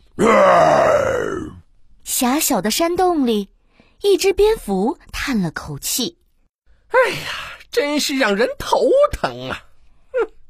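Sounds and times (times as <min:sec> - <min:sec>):
lion roaring: 0:00.2 - 0:01.6
speech: 0:02.4 - 0:06.2, 0:06.9 - 0:10.4.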